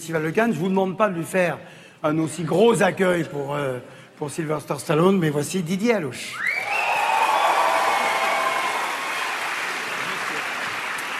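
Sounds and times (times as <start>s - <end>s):
speech: 0.0s - 6.6s
film festival audience applauding a journalist guest: 6.6s - 11.1s.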